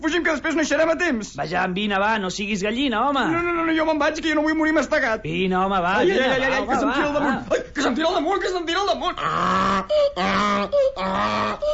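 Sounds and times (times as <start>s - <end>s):
speech: 0.0s - 11.7s
donkey braying: 9.2s - 11.7s.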